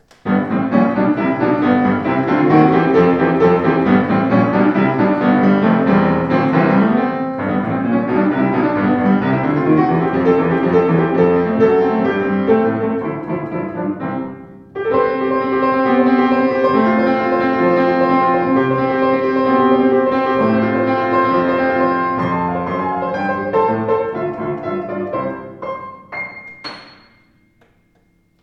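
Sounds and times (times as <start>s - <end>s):
Sauter ash piano: 0.0s - 28.4s.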